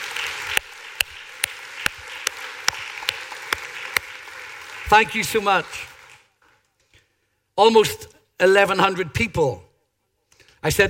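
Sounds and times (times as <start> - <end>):
audience applause: 0.0 - 6.3
speech: 4.9 - 5.9, 7.6 - 9.6, 10.6 - 10.8.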